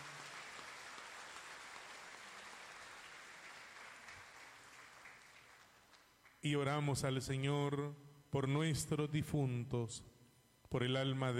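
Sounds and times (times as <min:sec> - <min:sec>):
audience applause: 0:00.0 - 0:06.4
speech: 0:06.4 - 0:11.3.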